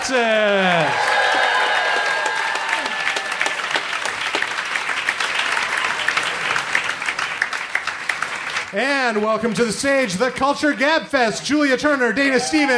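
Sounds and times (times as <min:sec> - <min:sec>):
audience applause welcoming hosts onto a stage at a live show: 0:00.0 - 0:10.4
speech: 0:00.1 - 0:00.6, 0:08.7 - 0:12.7.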